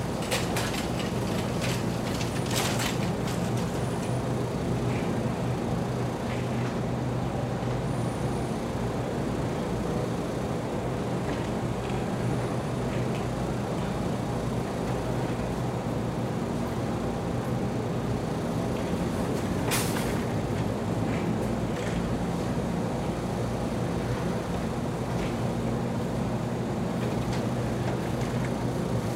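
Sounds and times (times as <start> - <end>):
shopping carts at a store entrance: 0.0 - 4.0
vending machines at a store entrance: 0.0 - 29.1.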